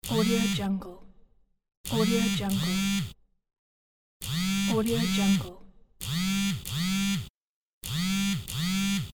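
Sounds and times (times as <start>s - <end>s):
cell phone vibrating: 1.9s - 3.2s, 4.2s - 5.4s, 6.0s - 9.1s.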